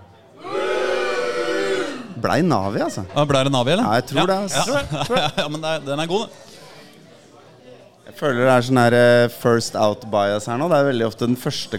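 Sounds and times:
live crowd booing: 0.4s - 2.2s
speech: 2.2s - 6.5s, 8.2s - 11.7s
laughter: 4.2s - 6.2s.

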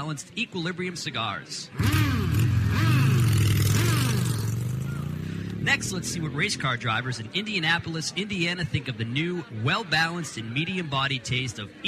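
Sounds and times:
speech: 0.0s - 2.3s, 5.6s - 11.8s
motorcycle engine revving: 1.8s - 6.8s.

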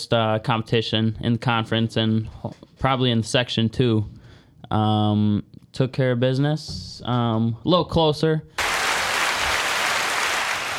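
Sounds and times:
speech: 0.0s - 8.6s
crowd applause: 8.6s - 10.7s.

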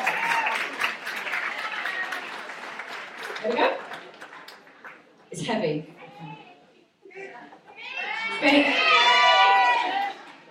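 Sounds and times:
audience applause: 0.0s - 5.2s, 9.4s - 10.4s
speech: 3.4s - 3.8s, 5.4s - 6.4s.

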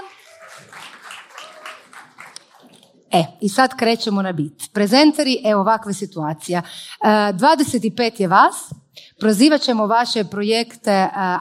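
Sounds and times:
audience applause at a Croatian project-presentation event: 0.0s - 2.8s
speech: 0.6s - 1.1s, 3.1s - 11.3s.

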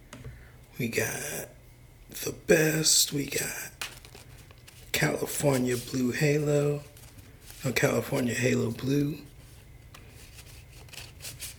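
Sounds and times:
faint low hum: 0.0s - 11.5s
speech: 0.8s - 3.8s, 5.0s - 6.9s, 7.6s - 9.3s
tarot card deck being shuffled: 3.8s - 11.5s.

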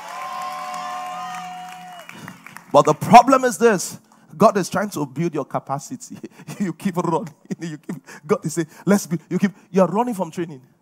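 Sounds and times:
audience clapping: 0.0s - 3.4s
speech: 2.7s - 10.7s.

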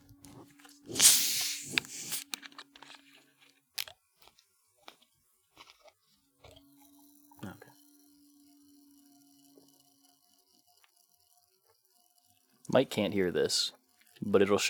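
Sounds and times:
cream soda bottle opening hiss: 0.6s - 3.0s
speech: 12.7s - 14.6s.

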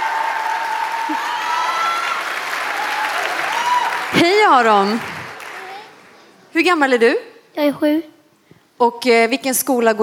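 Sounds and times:
audience applause: 0.0s - 6.0s
speech: 1.1s - 1.4s, 4.1s - 5.1s, 6.6s - 8.1s, 8.8s - 10.0s.

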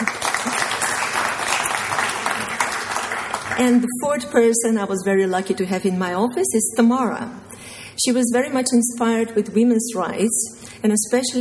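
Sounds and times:
audience applause: 0.0s - 3.7s
speech: 3.6s - 7.4s, 8.0s - 11.4s.

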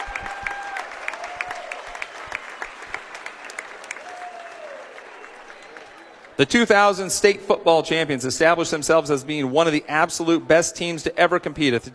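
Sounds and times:
crowd round of applause: 0.0s - 6.9s
faint whistles: 5.1s - 6.3s
speech: 6.4s - 11.9s.

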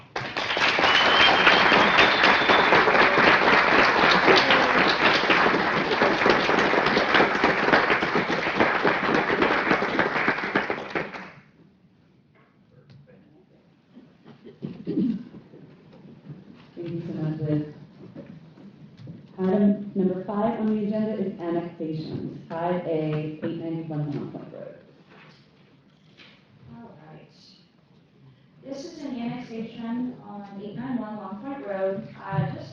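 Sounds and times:
applause for employee: 0.0s - 11.5s
group cheering: 0.6s - 9.3s
people talking: 16.8s - 17.8s, 19.4s - 24.8s, 28.6s - 32.7s.

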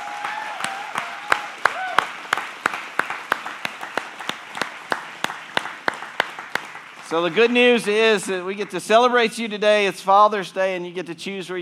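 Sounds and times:
audience applause: 0.0s - 8.9s
crowd noise: 0.0s - 10.0s
speech: 7.1s - 11.5s.

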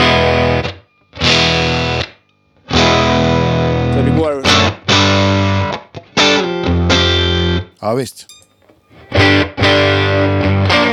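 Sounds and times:
overdriven guitar through a Deluxe amp emulation: 0.0s - 2.1s, 2.7s - 7.6s, 8.3s - 10.9s
speech: 7.8s - 8.4s.

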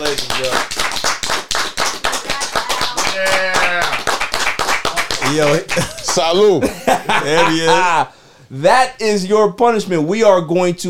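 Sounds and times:
audience applause and clapping: 0.0s - 6.5s
speech: 0.1s - 0.8s, 5.4s - 10.8s
laughter: 5.2s - 8.1s.

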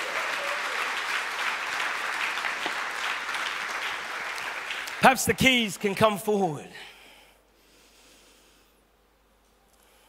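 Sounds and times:
audience applauding: 0.0s - 6.4s
speech: 5.0s - 6.9s.

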